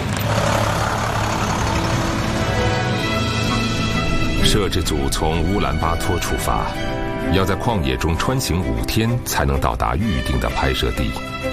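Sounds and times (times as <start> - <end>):
heavy engines of a convoy of vehicles setting off toward the Gobi: 0.0 - 7.4
speech: 4.5 - 11.5.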